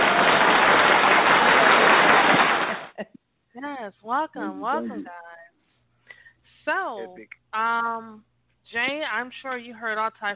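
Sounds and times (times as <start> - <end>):
round of applause welcoming guests on a talk show: 0.0 - 3.0
speech: 4.2 - 5.2, 6.6 - 10.3.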